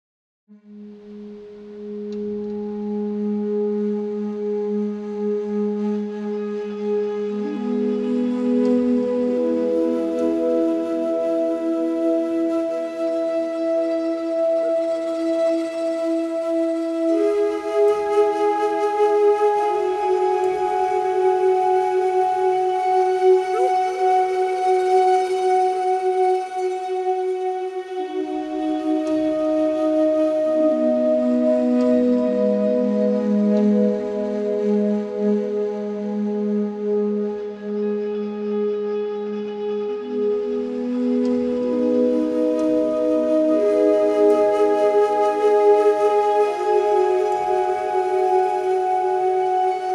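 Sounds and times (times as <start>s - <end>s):
warm flute: 0.5s - 49.9s.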